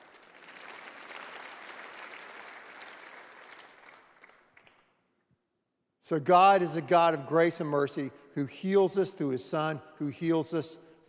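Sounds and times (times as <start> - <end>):
audience clapping: 0.0 - 5.0
speech: 6.1 - 10.8.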